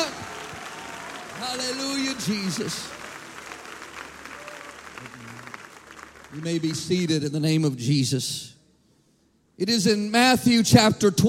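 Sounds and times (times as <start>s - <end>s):
audience clapping hands: 0.0s - 7.5s
speech: 1.4s - 3.0s, 6.3s - 8.6s, 9.6s - 11.2s.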